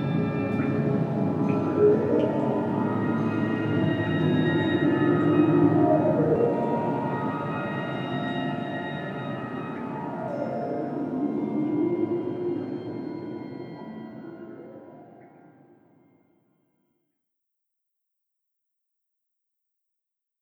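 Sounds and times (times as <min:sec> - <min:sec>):
cave ambience: 0:00.0 - 0:15.6.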